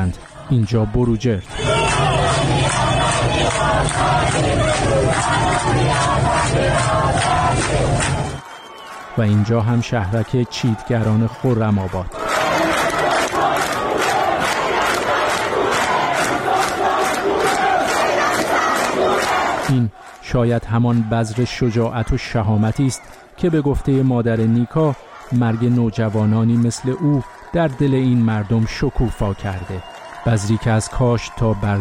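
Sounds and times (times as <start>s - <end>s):
speech: 0.0s - 1.7s, 2.4s - 8.4s, 9.2s - 12.2s, 19.7s - 31.8s
street protesters chanting: 1.4s - 8.5s, 12.1s - 27.8s.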